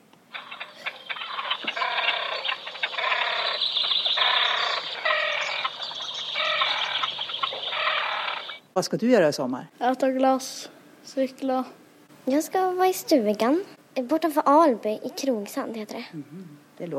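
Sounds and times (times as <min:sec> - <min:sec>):
great crested grebe giving harsh rattling calls: 0:00.3 - 0:08.7
speech: 0:08.8 - 0:16.9.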